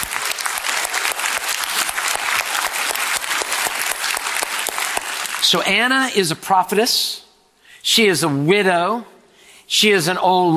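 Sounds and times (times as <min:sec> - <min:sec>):
large crowd applause: 0:00.0 - 0:05.5
speech: 0:05.5 - 0:07.2, 0:07.8 - 0:09.1, 0:09.7 - 0:10.5.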